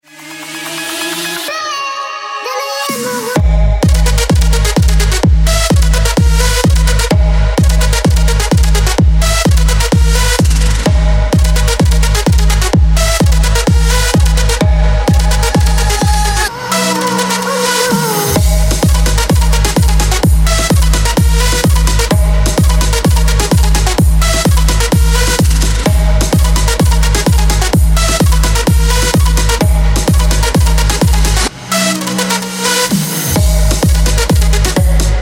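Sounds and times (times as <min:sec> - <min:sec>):
loud powerful club music: 0:00.0 - 0:35.2.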